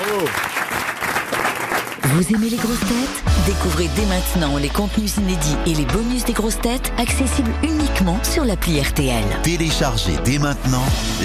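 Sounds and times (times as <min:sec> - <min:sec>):
audience applause: 0:00.0 - 0:02.6
speech: 0:00.2 - 0:00.6, 0:02.1 - 0:11.2.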